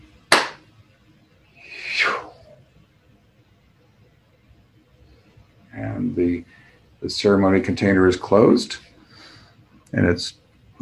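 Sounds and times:
group clapping in unison: 0:00.3 - 0:00.6
speech: 0:05.8 - 0:08.9, 0:09.9 - 0:10.8.

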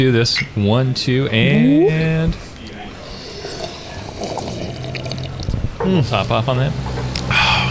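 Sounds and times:
speech: 0:00.0 - 0:02.5, 0:05.8 - 0:06.9
people sipping coffee from mugs: 0:03.0 - 0:05.6.

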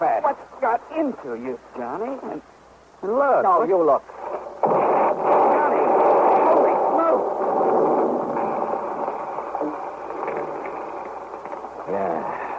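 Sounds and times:
speech: 0:00.0 - 0:04.4
bomb exploding in a radio drama: 0:04.3 - 0:12.0.

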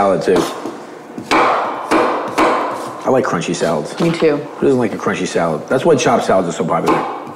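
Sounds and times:
speech: 0:00.0 - 0:01.4, 0:03.1 - 0:07.2
knife slicing green apples on a cutting board: 0:02.3 - 0:03.0.

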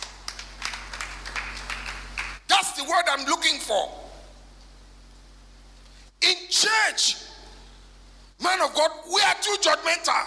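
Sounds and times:
audience clapping: 0:00.0 - 0:02.5
speech: 0:02.8 - 0:04.0, 0:06.2 - 0:07.3, 0:08.4 - 0:10.2.

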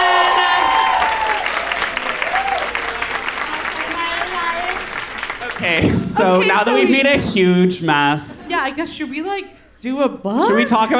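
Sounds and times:
audience round of applause: 0:00.0 - 0:06.8
speech: 0:06.2 - 0:10.9.

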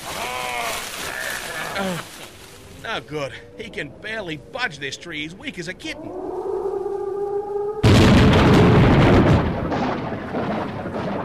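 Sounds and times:
speech: 0:01.8 - 0:02.2, 0:02.8 - 0:06.3
lightning strike thunderclap: 0:07.8 - 0:11.2.

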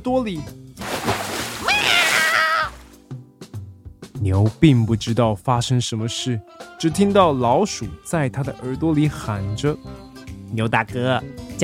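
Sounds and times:
speech: 0:00.0 - 0:01.2, 0:04.2 - 0:11.4
cat falling into water: 0:00.8 - 0:02.9
high wavering cry: 0:01.6 - 0:02.8.

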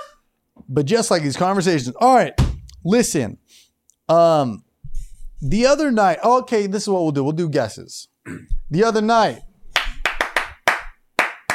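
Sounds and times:
speech: 0:00.7 - 0:04.6, 0:05.4 - 0:09.5
hands clapping: 0:09.7 - 0:11.5.

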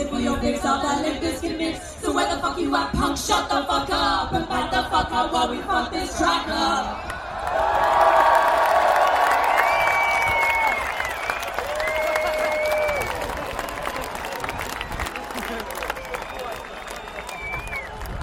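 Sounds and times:
speech: 0:00.4 - 0:04.4, 0:05.0 - 0:07.1
crowd applauding: 0:07.1 - 0:18.2
sustained whistles: 0:09.5 - 0:13.2, 0:15.9 - 0:18.2.

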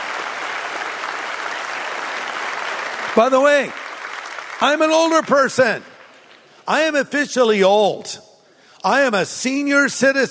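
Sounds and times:
audience applause: 0:00.0 - 0:06.5
speech: 0:03.2 - 0:03.8, 0:04.6 - 0:05.9, 0:06.7 - 0:10.3.

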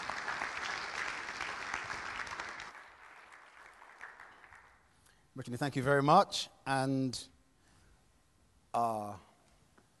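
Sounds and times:
audience applause: 0:00.0 - 0:04.8
speech: 0:05.4 - 0:07.3, 0:08.7 - 0:09.3.

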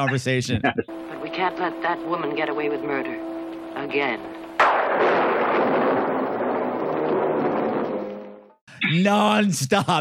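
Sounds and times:
speech: 0:00.0 - 0:05.3, 0:08.9 - 0:09.9
ominous thunderclap: 0:03.4 - 0:08.5.

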